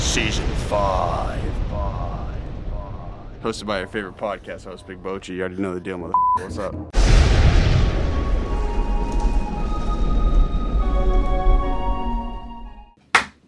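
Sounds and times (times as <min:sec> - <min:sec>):
deep booming rumble with faint ringing tones: 0:00.0 - 0:05.0, 0:06.9 - 0:11.6
speech: 0:00.2 - 0:02.1, 0:03.4 - 0:07.0
double hand clap: 0:13.2 - 0:13.4.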